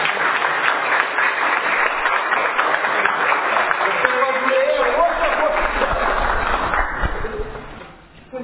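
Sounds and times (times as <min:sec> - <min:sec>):
applause: 0:00.0 - 0:07.9.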